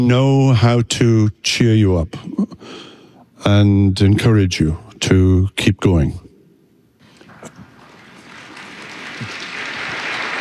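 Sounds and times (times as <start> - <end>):
speech: 0.0 - 2.8, 3.4 - 6.2
audience clapping: 7.1 - 10.4.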